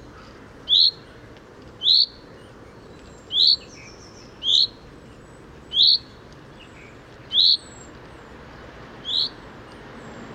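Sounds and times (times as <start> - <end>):
common chaffinch Fringilla coelebs calling: 0.1 - 1.2, 1.8 - 7.9, 9.0 - 9.4.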